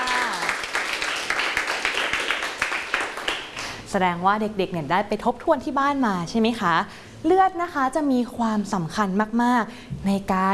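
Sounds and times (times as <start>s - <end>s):
children clapping in a classroom: 0.0s - 3.7s
speech: 3.9s - 10.5s.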